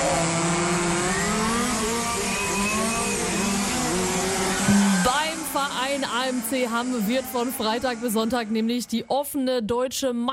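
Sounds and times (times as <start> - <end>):
radio-controlled model race car engine: 0.0 - 9.1
speech: 6.4 - 10.3.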